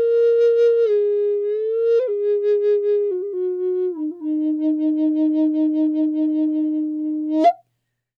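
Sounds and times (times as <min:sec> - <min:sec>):
E-flat bass flute of Eastern cedar: 0:00.0 - 0:07.6.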